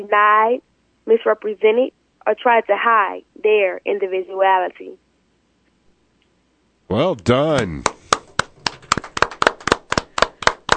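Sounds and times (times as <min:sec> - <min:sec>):
speech: 0:00.0 - 0:05.0, 0:06.9 - 0:08.0
person clapping in a brisk rhythm: 0:07.2 - 0:10.7.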